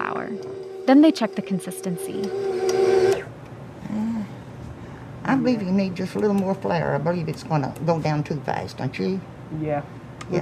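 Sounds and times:
mixer humming while mixing batter: 0.0 - 3.4
speech: 0.3 - 2.7, 5.3 - 10.4.

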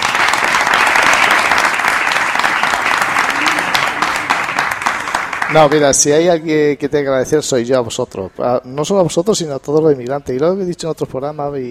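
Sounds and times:
audience applause: 0.0 - 6.2
speech: 5.5 - 11.6.

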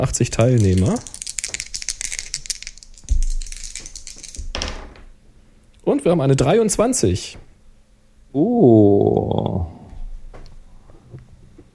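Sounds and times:
speech: 0.0 - 1.1, 5.8 - 7.5, 8.3 - 9.7
dice being rolled: 0.4 - 4.7.

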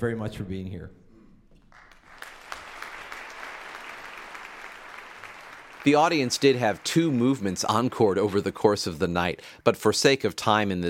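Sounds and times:
speech: 0.0 - 1.0, 5.8 - 10.8
concert audience applause: 1.7 - 8.4.

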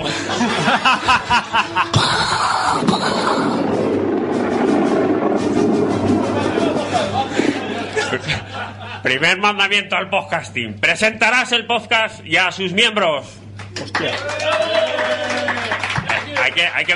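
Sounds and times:
laughter: 0.0 - 3.7, 6.0 - 9.2, 13.8 - 16.4
speech: 0.4 - 2.1, 9.1 - 15.3, 16.5 - 16.9
thunder: 1.9 - 8.1.

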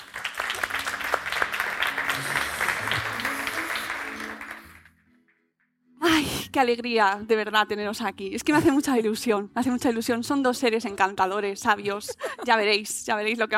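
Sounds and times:
audience applause for arriving guests: 0.0 - 5.0
speech: 6.5 - 13.5.

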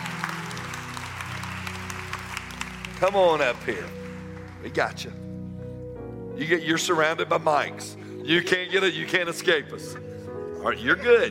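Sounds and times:
round of applause: 0.0 - 4.9
speech: 3.0 - 4.0, 4.6 - 5.3, 6.4 - 11.2.

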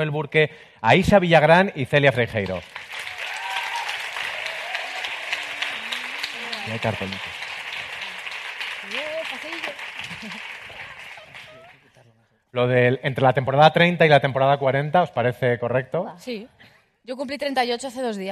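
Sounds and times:
speech: 0.0 - 2.8, 6.6 - 7.4, 8.9 - 10.6, 12.5 - 18.3
audience applause: 2.2 - 11.8
people cheering: 2.8 - 11.8.

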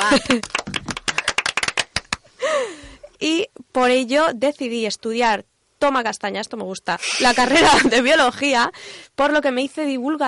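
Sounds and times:
laughter: 0.0 - 0.5, 7.3 - 8.1
speech: 0.1 - 0.7, 3.2 - 10.2
scattered applause: 0.2 - 2.2.

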